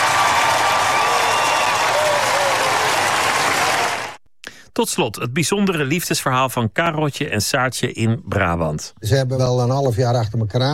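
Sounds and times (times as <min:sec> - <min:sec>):
crowd applause: 0:00.0 - 0:04.2
speech: 0:04.8 - 0:10.7.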